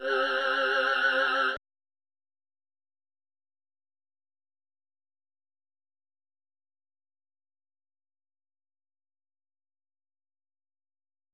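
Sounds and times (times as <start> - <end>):
synth pad: 0.0 - 1.6.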